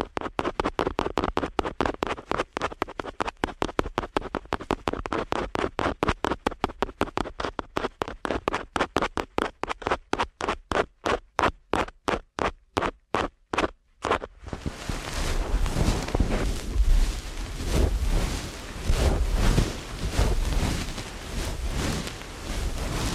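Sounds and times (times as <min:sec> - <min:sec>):
continuous rubbing rustle: 0:00.0 - 0:11.6, 0:13.4 - 0:23.1
rapid scratchy ASMR ear cleaning at helicopter speed: 0:14.5 - 0:23.1.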